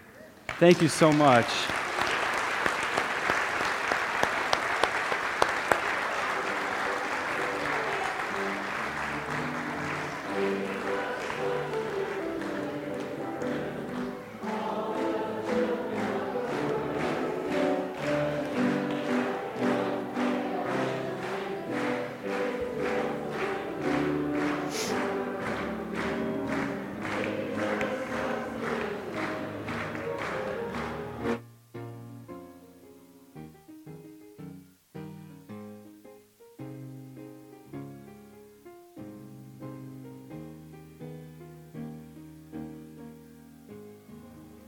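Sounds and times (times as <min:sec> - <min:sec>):
audience applause: 0:00.4 - 0:31.4
speech: 0:00.6 - 0:01.8.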